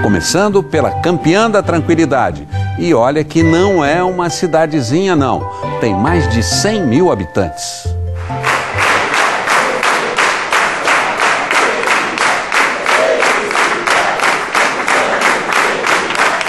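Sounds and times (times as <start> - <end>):
speech: 0.0 - 8.4
audience clapping and cheering: 8.1 - 16.4.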